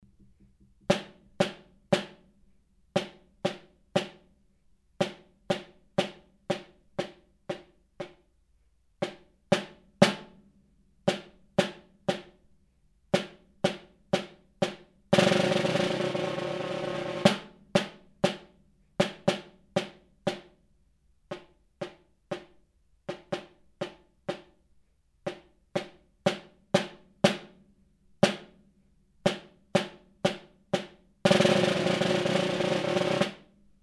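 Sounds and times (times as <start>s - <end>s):
snare drum: 0.0s - 2.3s, 3.0s - 4.3s, 5.0s - 8.2s, 9.0s - 10.4s, 11.1s - 12.4s, 13.2s - 20.6s, 21.3s - 24.6s, 25.3s - 27.6s, 28.2s - 28.6s, 29.3s - 33.6s.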